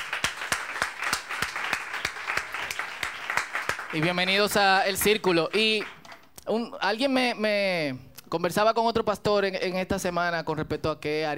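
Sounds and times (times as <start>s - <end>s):
audience applause: 0.0s - 6.1s
speech: 3.9s - 11.3s.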